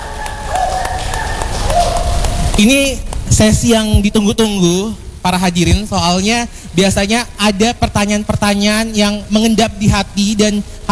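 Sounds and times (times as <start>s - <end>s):
audience applause: 0.0s - 2.7s
speech: 2.6s - 10.8s.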